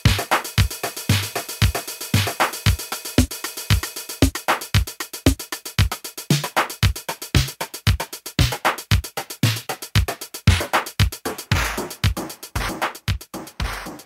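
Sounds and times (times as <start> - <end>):
vintage drum machine beat: 0.0 - 14.0.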